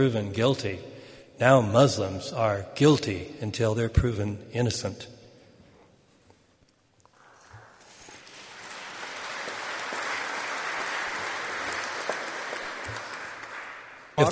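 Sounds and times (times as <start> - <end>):
speech: 0.0 - 5.1, 14.2 - 14.3
audience applause: 7.5 - 14.3.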